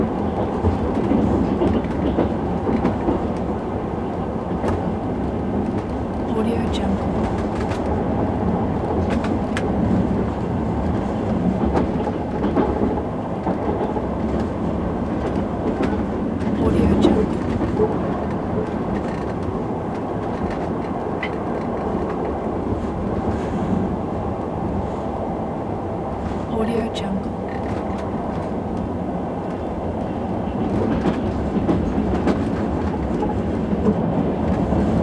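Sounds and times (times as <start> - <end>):
atmosphere inside passenger train: 0.0 - 35.0.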